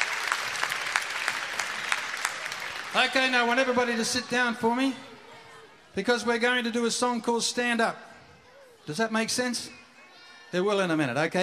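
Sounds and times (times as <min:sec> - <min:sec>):
big burst of applause: 0:00.0 - 0:04.3
speech: 0:02.9 - 0:05.1, 0:06.0 - 0:08.1, 0:08.8 - 0:09.8, 0:10.5 - 0:11.4.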